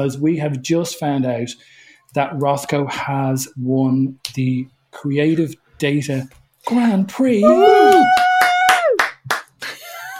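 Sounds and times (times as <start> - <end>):
speech: 0.0 - 8.2
people cheering: 7.4 - 9.2
people clapping: 7.4 - 10.1.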